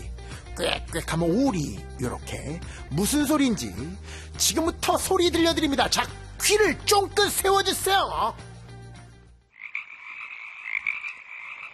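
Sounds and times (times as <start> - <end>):
speech: 0.6 - 8.5
frogs croaking chorus: 9.5 - 11.7.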